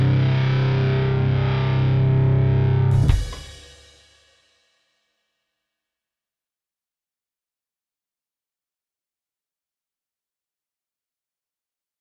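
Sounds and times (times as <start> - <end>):
techno rock music: 0.0 - 3.7.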